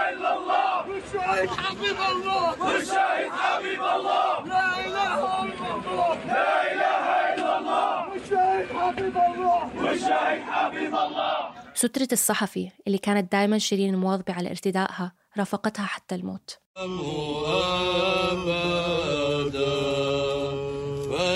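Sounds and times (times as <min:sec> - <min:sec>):
crowd chanting slogans at the funeral procession of journalist Shireen Abu Akleh: 0:00.0 - 0:11.8, 0:16.8 - 0:21.3
speech: 0:01.1 - 0:20.4.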